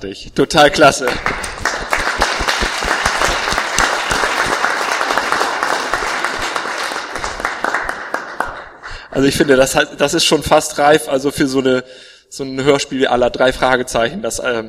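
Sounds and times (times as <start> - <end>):
speech: 0.0 - 2.2, 9.2 - 14.6
crowd cheering and applauding in an audio drama: 1.0 - 8.8.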